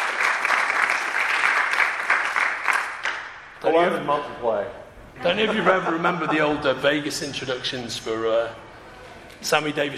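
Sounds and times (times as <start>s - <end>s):
audience applause: 0.0s - 3.4s
speech: 3.7s - 8.7s, 9.4s - 9.9s
laughter: 5.2s - 7.9s.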